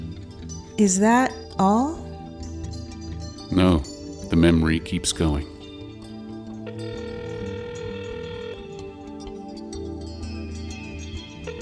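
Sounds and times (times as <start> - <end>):
speech: 0.8 - 2.0, 3.5 - 5.5
telephone ringing with a steady electronic tone: 6.6 - 9.0, 11.4 - 11.6.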